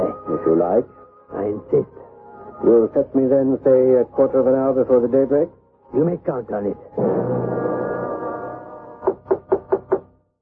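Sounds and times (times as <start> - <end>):
speech: 0.4 - 2.0, 2.6 - 7.4
knocking on a door: 9.0 - 10.1.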